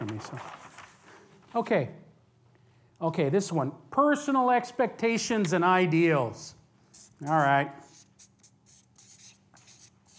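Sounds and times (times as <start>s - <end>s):
speech: 0.2s - 0.6s, 1.5s - 2.0s, 3.0s - 6.6s, 7.2s - 7.9s
writing strokes on a board: 6.9s - 10.1s.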